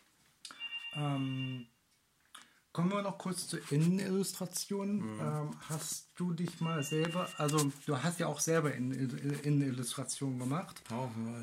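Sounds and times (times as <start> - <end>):
telephone ringing with a steady electronic tone: 0.5 - 1.7, 6.5 - 7.8
speech: 0.9 - 1.8, 2.8 - 11.4.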